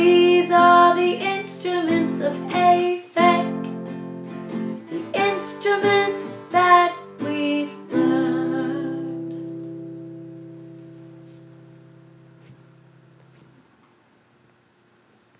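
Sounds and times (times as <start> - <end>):
song with vocals: 0.0 - 3.7, 4.8 - 9.5.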